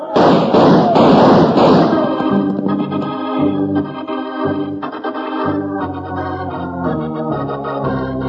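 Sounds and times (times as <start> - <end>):
gunshots: 0.0 - 3.6
dramatic music with sustained tones: 0.2 - 8.1.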